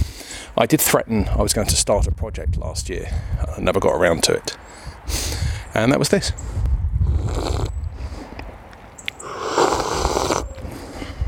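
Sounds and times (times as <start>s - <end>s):
speech: 0.6s - 6.6s
coffee slurping: 7.1s - 7.7s, 9.2s - 10.5s.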